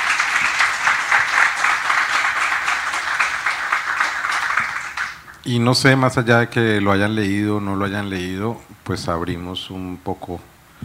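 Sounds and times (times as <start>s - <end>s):
audience applause: 0.0s - 5.4s
speech: 5.5s - 10.5s.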